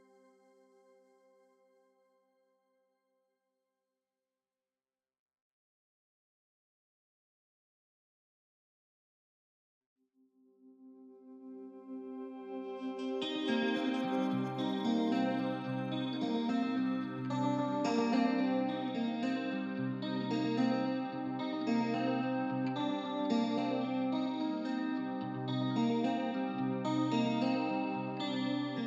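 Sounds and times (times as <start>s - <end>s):
guitars: 11.9s - 28.8s.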